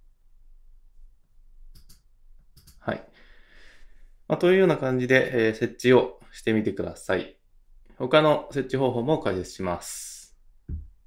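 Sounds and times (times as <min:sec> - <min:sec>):
mouse click on a save button: 0:01.7 - 0:02.8
speech: 0:02.8 - 0:03.1, 0:04.3 - 0:07.4, 0:08.0 - 0:10.1.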